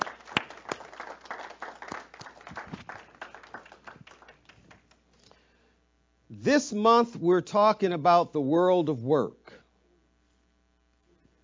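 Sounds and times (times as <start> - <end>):
church congregation clapping for the Lord at a service: 0.0 - 5.0
speech: 6.4 - 9.4.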